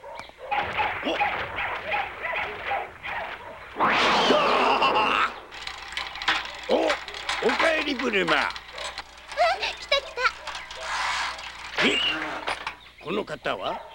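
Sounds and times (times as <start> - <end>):
dogs barking: 0.0 - 4.0, 8.4 - 12.8, 13.5 - 13.9
laughter: 4.3 - 5.4
speech: 7.9 - 8.6, 13.1 - 13.9.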